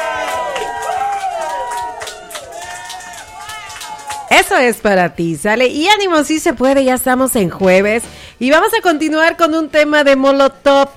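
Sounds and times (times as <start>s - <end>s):
crowd cheering and whooping: 0.0s - 4.4s
scattered clapping: 0.0s - 4.5s
speech: 4.5s - 10.9s.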